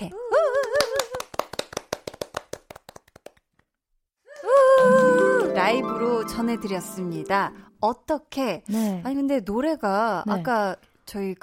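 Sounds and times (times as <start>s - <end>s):
people clapping: 0.6s - 3.7s, 4.4s - 7.6s
speech: 5.7s - 11.4s.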